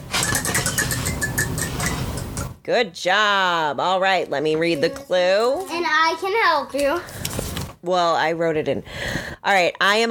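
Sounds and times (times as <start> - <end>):
wooden game spinner whirring: 0.0 - 2.6
speech: 2.7 - 7.2, 7.8 - 10.0.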